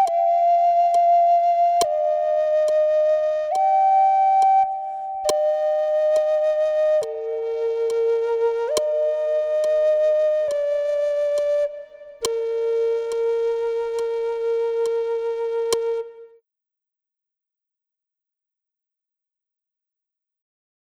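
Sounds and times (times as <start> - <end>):
flute playing classical canon: 0.0 - 16.4.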